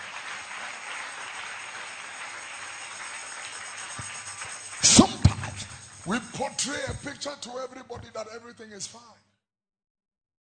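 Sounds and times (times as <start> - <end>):
audience clapping: 0.0 - 7.4
speech: 6.1 - 9.2.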